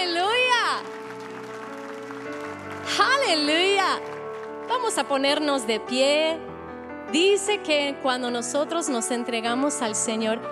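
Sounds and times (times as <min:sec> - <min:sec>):
sustained keyboard chords: 0:00.0 - 0:10.4
audience applause: 0:00.5 - 0:04.8
speech: 0:03.0 - 0:06.5, 0:07.1 - 0:10.4.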